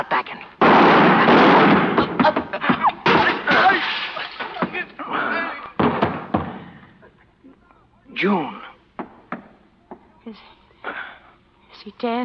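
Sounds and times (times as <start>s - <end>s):
volley of loud gunshots: 0.6s - 4.8s
speech: 8.2s - 8.5s, 12.0s - 12.2s.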